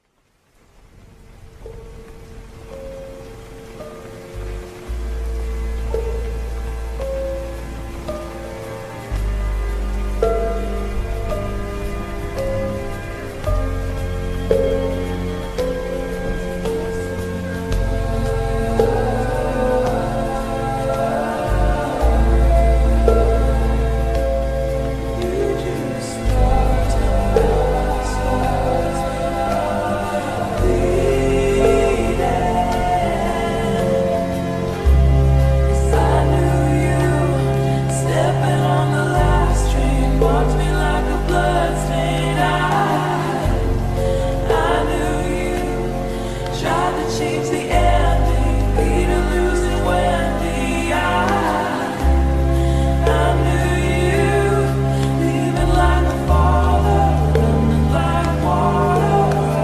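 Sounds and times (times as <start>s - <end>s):
slowed reverb music: 0.0s - 59.6s.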